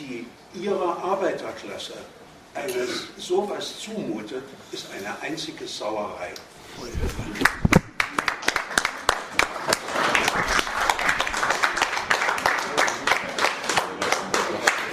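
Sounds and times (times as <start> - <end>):
speech: 0.1 - 7.6
audience applause: 7.4 - 14.9.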